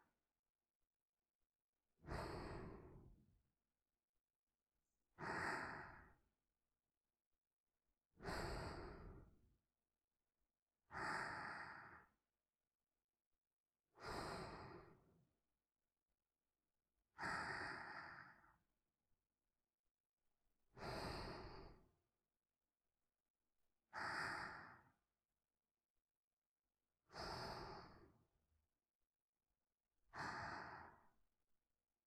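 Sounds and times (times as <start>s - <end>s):
person breathing in sleep: 2.0s - 3.3s, 5.2s - 6.2s, 8.2s - 9.4s, 10.9s - 12.2s, 13.9s - 15.2s, 17.1s - 18.7s, 20.7s - 21.9s, 23.9s - 25.0s, 27.0s - 28.3s, 30.1s - 31.2s.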